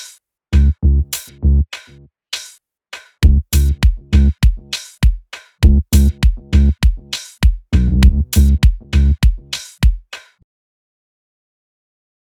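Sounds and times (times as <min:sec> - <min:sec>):
bass tec electro music: 0:00.6 - 0:02.0, 0:03.2 - 0:04.8, 0:05.6 - 0:07.2, 0:07.8 - 0:09.6.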